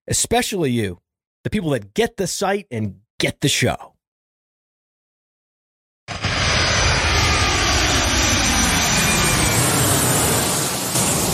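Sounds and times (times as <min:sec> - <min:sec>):
speech: 0:00.1 - 0:03.9
airplane taking off engine roar: 0:06.1 - 0:11.3.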